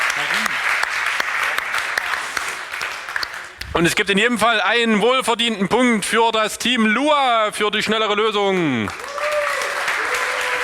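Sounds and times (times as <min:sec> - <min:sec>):
audience applause for both teams at a team coding contest: 0:00.0 - 0:03.6, 0:08.7 - 0:10.6
speech: 0:03.8 - 0:09.2.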